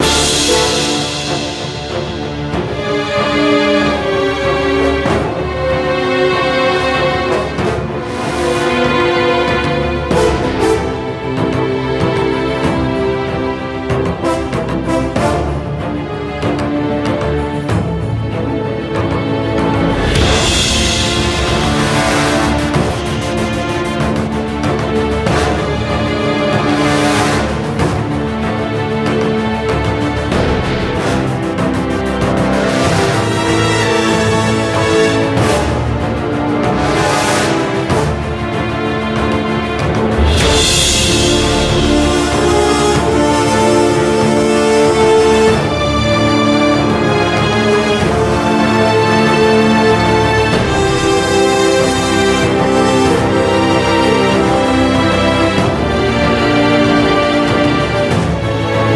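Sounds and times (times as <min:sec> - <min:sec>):
battle background music: 0:00.0 - 0:58.9.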